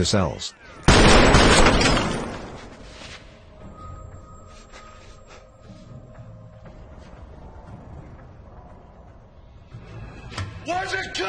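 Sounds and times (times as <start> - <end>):
speech: 0.0 - 2.0
gunfire in a shootout between two men: 0.9 - 2.6.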